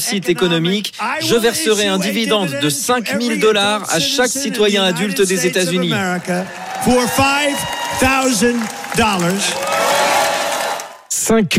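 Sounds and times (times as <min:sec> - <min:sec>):
speech: 0:00.0 - 0:09.9, 0:11.2 - 0:11.5
crowd cheering at a rally: 0:04.5 - 0:11.1.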